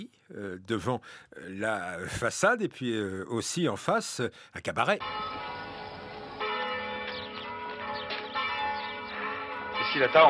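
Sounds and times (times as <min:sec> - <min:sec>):
speech: 0:00.0 - 0:05.6, 0:09.9 - 0:10.2
church bells pealing: 0:05.0 - 0:10.2.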